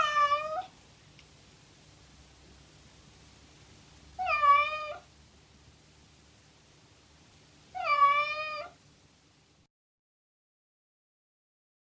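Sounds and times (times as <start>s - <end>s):
female cat: 0.0s - 0.7s, 4.2s - 5.1s, 7.7s - 8.8s.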